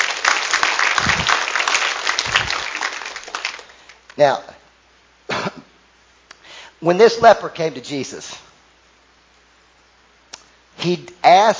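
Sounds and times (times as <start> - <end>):
audience clapping: 0.0 - 4.2
speech: 4.2 - 4.6, 6.8 - 8.4, 10.8 - 11.5.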